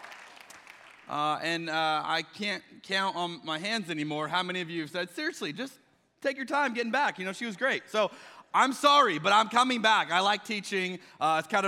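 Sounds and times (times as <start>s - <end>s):
audience applause: 0.0s - 1.1s
speech: 1.1s - 11.6s.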